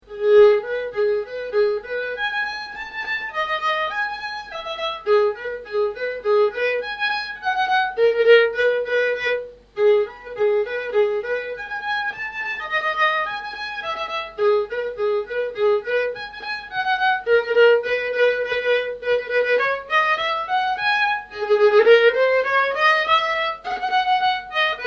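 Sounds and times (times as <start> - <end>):
solo polka tune: 0.0 - 24.8.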